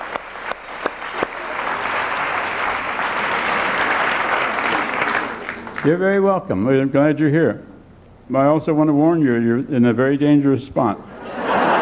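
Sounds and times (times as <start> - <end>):
audience applauding guests being welcomed: 0.0 - 5.9
speech: 5.8 - 7.7, 8.3 - 11.1
laughter: 11.1 - 11.8.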